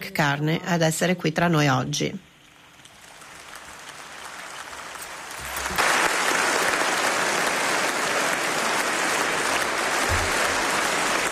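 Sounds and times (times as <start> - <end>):
speech: 0.2 - 2.3
applause in the Strasbourg parliament chamber: 2.8 - 11.3.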